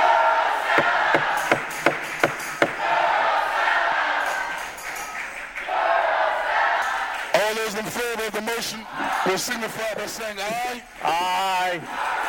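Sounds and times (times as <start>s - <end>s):
crowd chanting and shouting in council chambers: 0.0s - 12.2s
sharp evenly spaced knocks or claps: 0.7s - 2.8s
speech: 8.6s - 12.1s.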